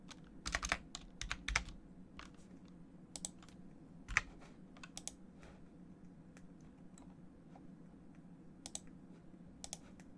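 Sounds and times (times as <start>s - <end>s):
keyboard typing: 0.0s - 5.2s
mouse clicks: 3.1s - 5.2s, 8.6s - 8.9s, 9.6s - 9.9s.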